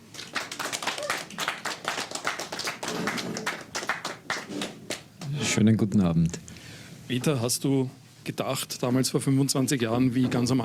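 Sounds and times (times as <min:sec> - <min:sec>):
crowd applauding: 0:00.0 - 0:05.4
speech: 0:05.6 - 0:06.5, 0:07.1 - 0:10.6.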